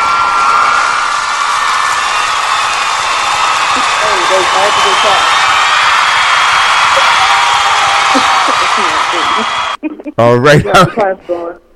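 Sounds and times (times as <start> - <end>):
canned crowd cheering and clapping effect: 0.0 - 9.8
speech: 4.5 - 5.4, 10.1 - 11.6
laughter: 6.9 - 10.9.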